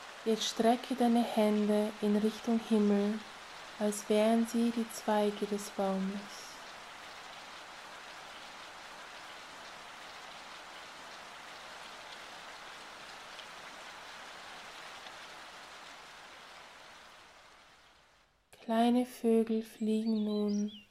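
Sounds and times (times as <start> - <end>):
steady rain falling: 0.0 - 18.5, 20.2 - 20.8
speech: 0.2 - 6.4, 18.7 - 20.8.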